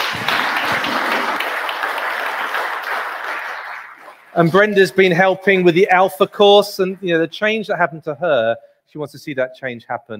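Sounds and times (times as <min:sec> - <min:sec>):
audience clapping: 0:00.0 - 0:05.2
speech: 0:04.4 - 0:10.1.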